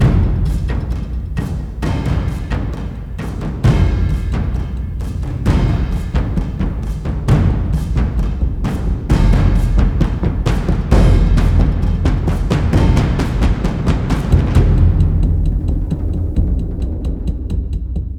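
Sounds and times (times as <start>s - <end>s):
combat music loop: 0.0s - 18.1s.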